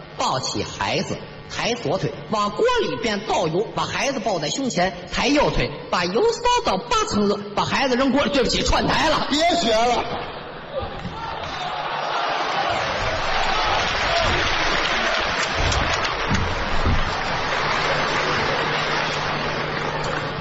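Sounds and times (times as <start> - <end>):
speech: 0.2 - 10.3
audience applause: 11.2 - 20.3.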